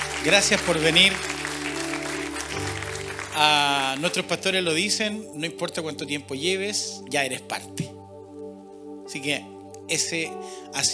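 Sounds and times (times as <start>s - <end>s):
welcome applause from audience: 0.0s - 4.4s
speech: 0.2s - 1.4s, 3.4s - 8.0s, 9.1s - 10.9s.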